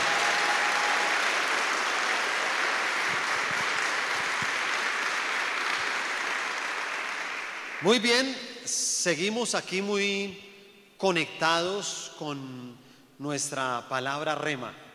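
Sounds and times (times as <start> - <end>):
audience applauding: 0.0 - 8.0
speech: 7.8 - 14.8.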